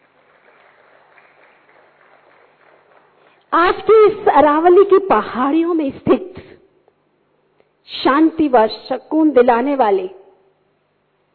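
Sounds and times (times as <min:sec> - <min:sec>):
audience applause: 0:00.0 - 0:03.5
speech: 0:03.5 - 0:06.2, 0:08.0 - 0:10.2.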